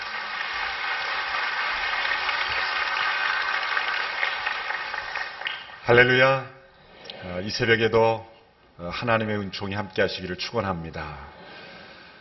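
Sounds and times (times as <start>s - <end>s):
crowd applauding: 0.0s - 6.2s
speech: 5.9s - 6.6s, 7.2s - 11.4s.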